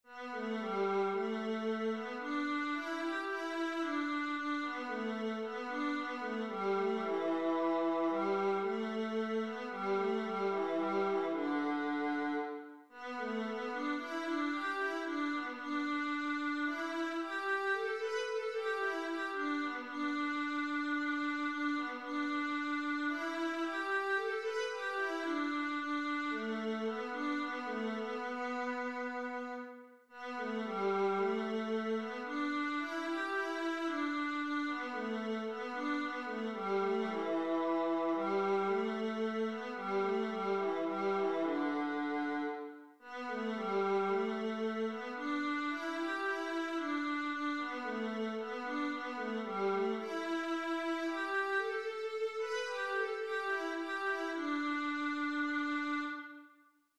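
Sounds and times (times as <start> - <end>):
viola: 0.0 - 56.6.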